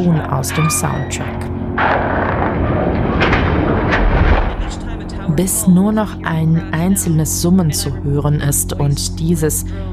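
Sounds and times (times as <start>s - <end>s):
speech: 0.0s - 2.4s, 5.3s - 9.9s
demolition blast of a falling antenna tower: 0.8s - 7.9s.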